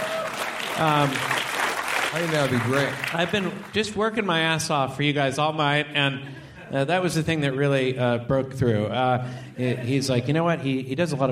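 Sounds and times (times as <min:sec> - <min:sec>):
audience applause: 0:00.0 - 0:04.0
speech: 0:00.8 - 0:01.4, 0:02.1 - 0:11.3
laughter: 0:06.1 - 0:07.6, 0:09.1 - 0:10.7.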